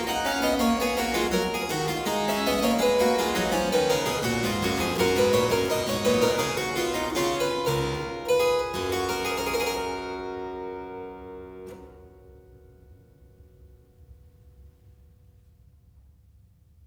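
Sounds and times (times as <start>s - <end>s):
keyboard piece: 0.0s - 11.7s.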